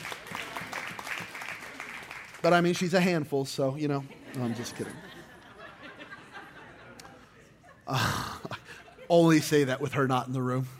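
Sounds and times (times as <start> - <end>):
audience applause: 0.0 - 2.8
speech: 2.4 - 5.1, 7.9 - 8.2, 9.1 - 10.7
laughter: 3.8 - 10.7.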